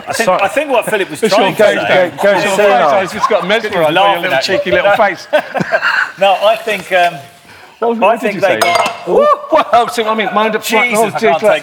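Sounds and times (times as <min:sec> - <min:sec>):
laughter: 0:00.0 - 0:06.4, 0:09.0 - 0:11.6
speech: 0:00.0 - 0:11.6
glass being dropped: 0:08.6 - 0:09.1.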